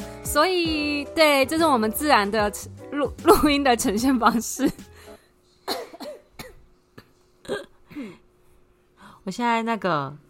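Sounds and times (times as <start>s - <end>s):
speech: 0.3s - 4.9s, 9.2s - 10.2s
distant coughing: 5.6s - 8.2s.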